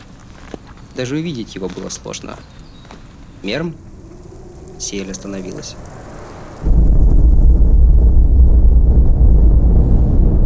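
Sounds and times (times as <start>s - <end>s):
speech: 1.0s - 2.6s, 3.4s - 3.9s, 4.8s - 6.0s
distant explosion: 5.8s - 10.4s.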